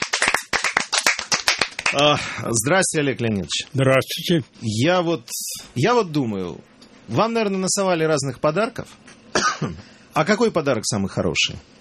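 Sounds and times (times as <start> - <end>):
audience applause: 0.0 - 2.3
speech: 1.9 - 11.8.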